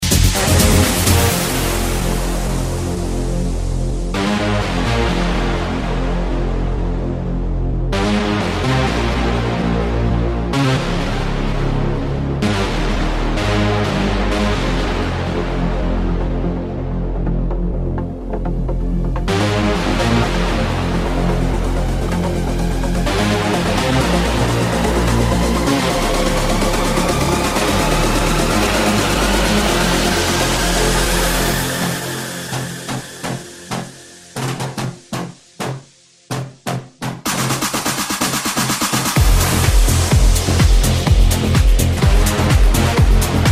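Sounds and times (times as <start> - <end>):
progressive techno house music: 0.0 - 43.5.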